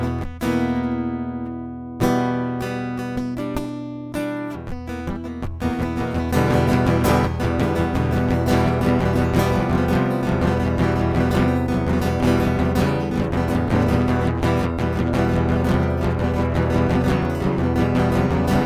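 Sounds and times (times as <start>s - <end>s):
acoustic improvisation: 0.0s - 18.6s.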